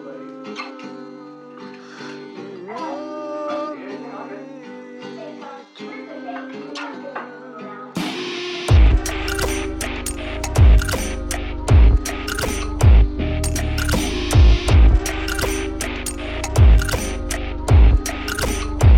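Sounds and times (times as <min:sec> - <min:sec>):
radio hum: 0:08.7 - 0:18.9.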